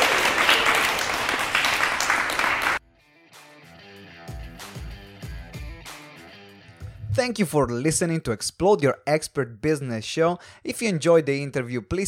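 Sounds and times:
crowd applause: 0.0 - 2.8
music with steady beat and bass notes: 3.3 - 7.2
speech: 7.2 - 12.0.

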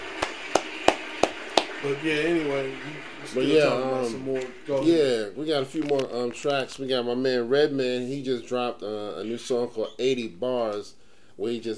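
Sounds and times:
hand claps: 0.0 - 1.8
speech: 1.8 - 11.7.

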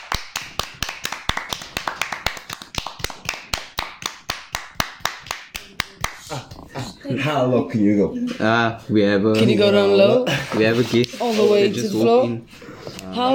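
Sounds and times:
group clapping in unison: 0.0 - 6.9
speech: 7.1 - 13.3.

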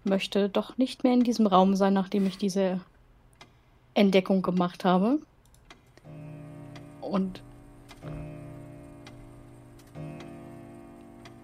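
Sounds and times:
speech: 0.0 - 2.9, 4.0 - 5.3, 7.1 - 8.2
clock ticking in a room: 5.6 - 11.4
low drone: 6.1 - 11.4.

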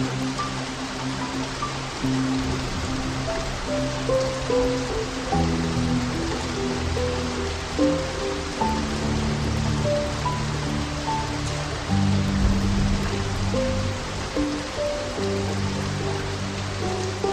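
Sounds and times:
rain hissing steadily: 0.0 - 17.3
slow piano playing soft sustained notes: 0.0 - 17.3.

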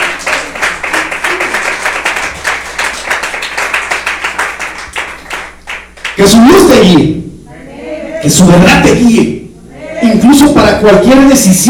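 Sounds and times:
audience clapping hands: 0.0 - 6.3
speech: 6.2 - 7.2, 8.2 - 9.4, 10.6 - 11.6.

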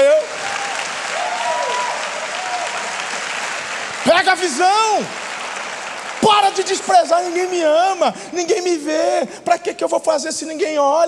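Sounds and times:
audience applause: 0.0 - 7.7
speech: 4.3 - 5.2, 6.2 - 11.0.

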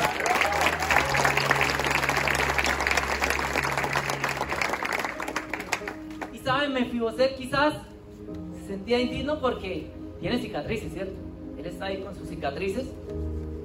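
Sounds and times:
audience applause: 0.0 - 6.3
speech: 6.6 - 7.9, 8.7 - 13.2.

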